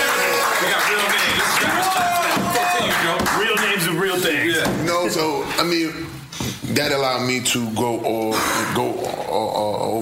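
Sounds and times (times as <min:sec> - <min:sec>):
audience applause at a stand-up comedy show: 0:00.0 - 0:04.2
speech: 0:05.5 - 0:10.0.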